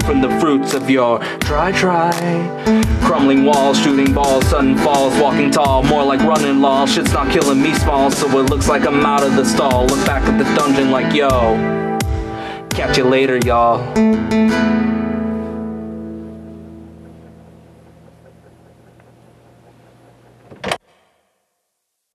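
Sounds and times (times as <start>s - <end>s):
rap music: 0.0s - 14.8s.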